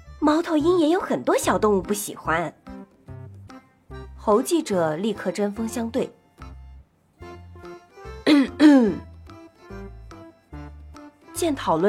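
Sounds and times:
speech: 0.3s - 2.6s, 4.2s - 6.2s, 11.4s - 11.8s
raspy coughs: 8.2s - 9.0s.

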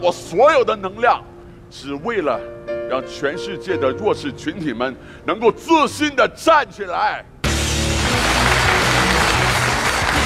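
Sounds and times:
speech: 0.0s - 7.3s
audience applause: 7.4s - 10.2s.

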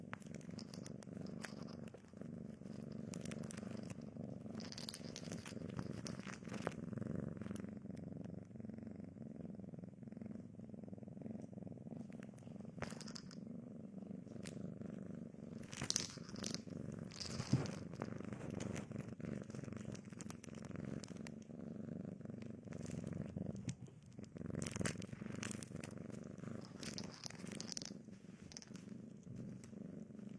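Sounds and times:
crackling and rustling: 0.0s - 9.0s, 11.3s - 30.3s
cat purring: 0.0s - 30.3s.

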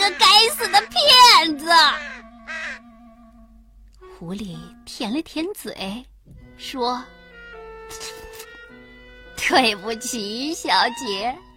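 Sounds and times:
crow cawing angrily: 0.0s - 2.9s
speech: 4.2s - 7.2s, 9.4s - 11.5s.

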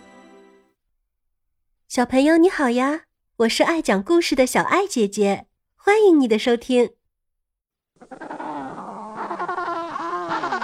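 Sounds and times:
speech: 1.9s - 7.0s, 8.0s - 8.3s
penguin chicks calling: 8.0s - 10.6s.

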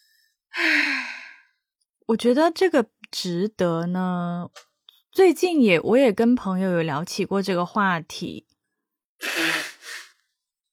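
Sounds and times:
speech: 2.1s - 8.5s
nose blowing: 9.2s - 10.2s.

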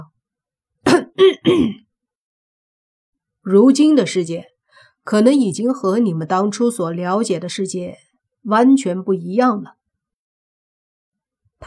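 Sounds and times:
person clearing throat: 0.9s - 1.9s
speech: 1.2s - 1.8s, 3.4s - 9.8s.

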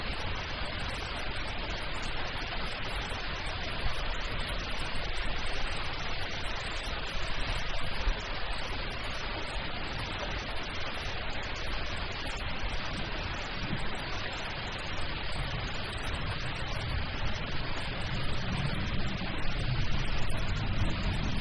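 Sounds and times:
thunderstorm heavy rain pouring: 0.0s - 21.3s
soft low rumble: 12.7s - 21.3s.

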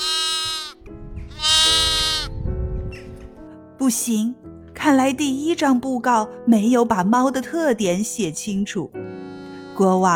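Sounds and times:
goat bleating: 0.0s - 2.3s
speech: 3.8s - 9.1s, 9.8s - 10.1s.

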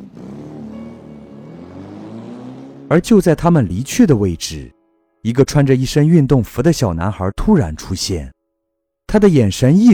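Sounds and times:
sports car engine roaring speeding off at night: 0.0s - 3.5s
speech: 2.9s - 8.4s, 9.1s - 9.9s.

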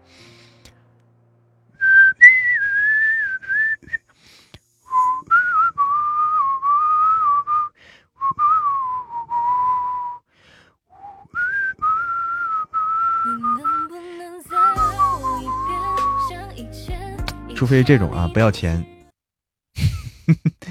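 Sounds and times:
person whistling with the mouth: 1.8s - 4.1s, 4.9s - 10.3s, 10.9s - 14.0s, 14.6s - 16.3s
speech: 17.6s - 18.9s.

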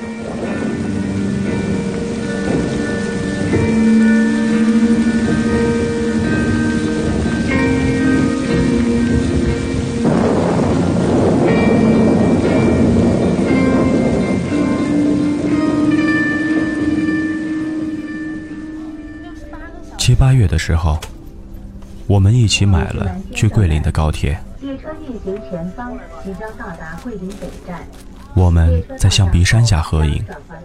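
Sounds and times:
thunder: 0.0s - 18.9s
rain: 0.0s - 30.6s
speech: 20.3s - 21.1s, 22.1s - 30.6s.

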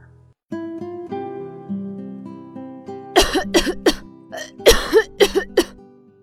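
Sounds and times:
coughing: 3.2s - 5.8s.

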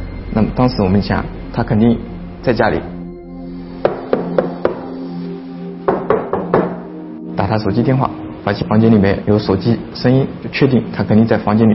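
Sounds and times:
speech: 0.4s - 2.9s, 7.5s - 11.7s
knocking on a door: 3.8s - 5.0s, 5.9s - 6.9s.

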